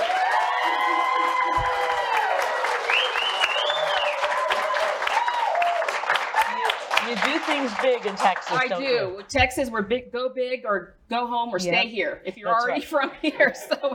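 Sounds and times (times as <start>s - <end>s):
audience whoops and shouted calls: 0.0s - 7.1s
live audience clapping for a guest: 0.0s - 9.4s
speech: 7.5s - 13.9s
laughter: 12.8s - 13.9s.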